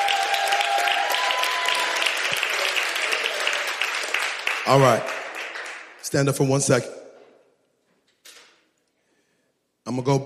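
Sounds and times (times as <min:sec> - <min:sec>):
group clapping: 0:00.0 - 0:06.4
speech: 0:04.7 - 0:05.1, 0:06.1 - 0:07.0, 0:09.9 - 0:10.2.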